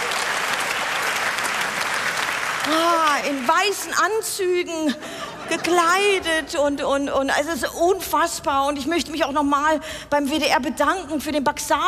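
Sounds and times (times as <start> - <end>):
audience applause: 0.0 - 4.0
speech: 2.6 - 11.8.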